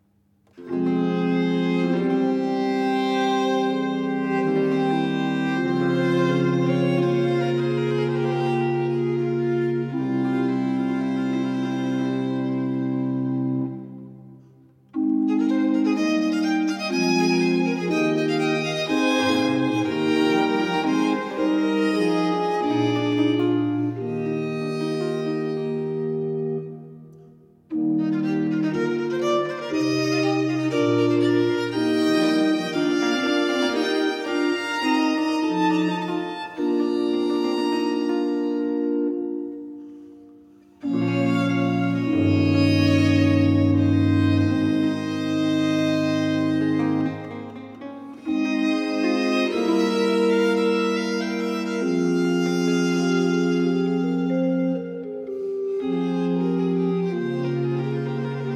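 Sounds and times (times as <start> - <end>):
sonata in B flat major: 0.0 - 58.5.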